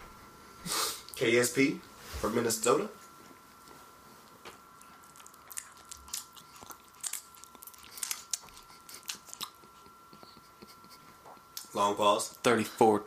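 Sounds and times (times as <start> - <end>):
quiet steady hum: 0.0 - 13.0
speech: 1.2 - 3.0, 11.9 - 13.0
wet mouth sounds of saliva: 4.8 - 10.4.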